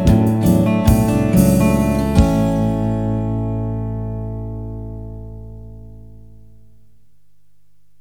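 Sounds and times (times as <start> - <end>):
drums: 0.0 - 3.4
guitar: 0.0 - 7.0
bass: 0.0 - 7.9.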